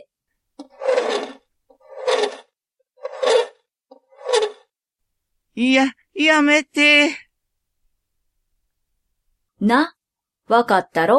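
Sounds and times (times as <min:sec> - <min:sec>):
fingernails scratching on glass: 0:00.6 - 0:04.7
speech: 0:05.6 - 0:07.2, 0:09.6 - 0:11.1.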